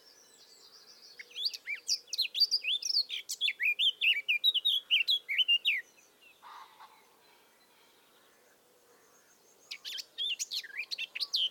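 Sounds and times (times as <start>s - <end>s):
Eurasian blackcap song: 0.0s - 6.4s, 9.6s - 11.4s.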